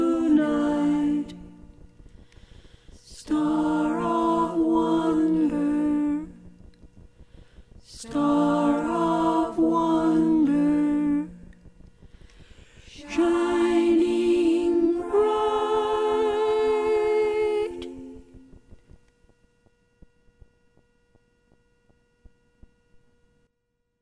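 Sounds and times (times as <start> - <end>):
soprano singing: 0.0 - 1.8, 3.0 - 6.5, 7.9 - 11.6, 12.8 - 18.6.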